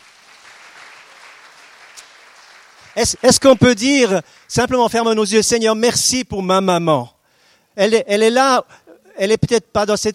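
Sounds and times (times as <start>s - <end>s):
church congregation applauding the mothers during a service: 0.0s - 5.3s
speech: 2.9s - 7.2s, 7.8s - 10.1s.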